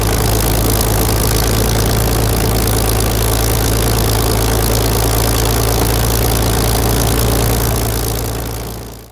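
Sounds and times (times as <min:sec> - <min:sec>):
1944 Supermarine Spitfire Mk-VIII aircraft engine startup: 0:00.0 - 0:09.1.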